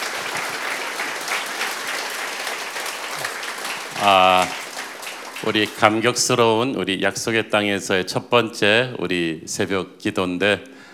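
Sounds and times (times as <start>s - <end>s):
audience applause: 0.0s - 6.0s
speech: 4.0s - 4.6s, 5.4s - 10.8s.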